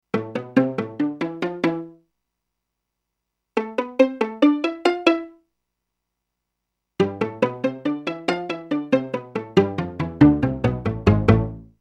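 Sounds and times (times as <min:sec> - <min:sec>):
pizzicato strings: 0:00.1 - 0:01.9, 0:03.6 - 0:05.4, 0:07.0 - 0:11.6.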